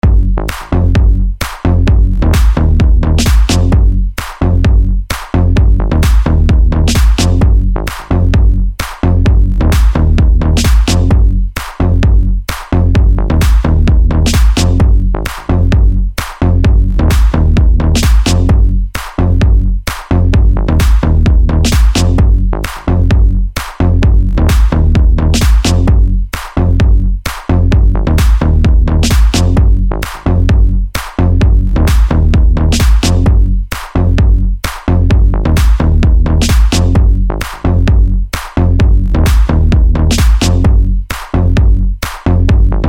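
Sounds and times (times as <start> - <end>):
funk house bass: 0.0 - 42.8.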